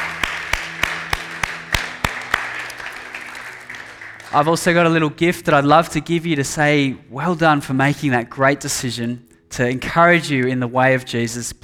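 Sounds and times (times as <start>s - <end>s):
crowd applause: 0.0s - 4.9s
speech: 4.3s - 11.6s.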